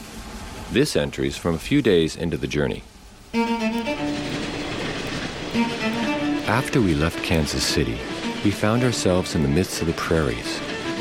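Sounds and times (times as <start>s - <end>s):
train running on rails: 0.0s - 10.9s
speech: 0.7s - 3.6s, 6.6s - 10.7s
tonal horn-like blast: 3.3s - 10.9s.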